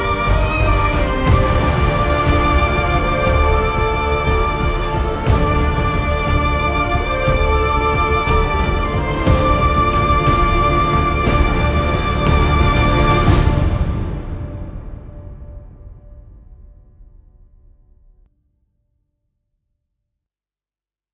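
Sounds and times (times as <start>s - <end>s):
emotional violin trailer music: 0.0s - 15.1s.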